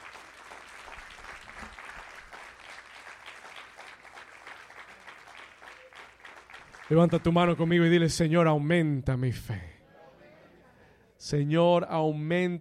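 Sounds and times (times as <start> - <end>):
audience applause: 0.0 - 8.0
speech: 6.9 - 9.7, 11.3 - 12.5.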